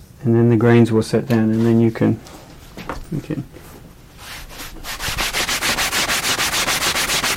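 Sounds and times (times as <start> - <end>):
speech: 0.2 - 2.4, 3.1 - 3.7
rubbing strokes over a surface as a wet finish is worked smooth: 4.2 - 7.3.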